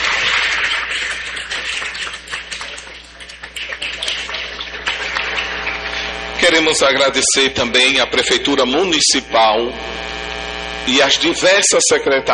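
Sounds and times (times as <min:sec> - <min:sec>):
audience applause: 0:00.0 - 0:06.8
speech: 0:06.6 - 0:10.1, 0:10.9 - 0:12.3.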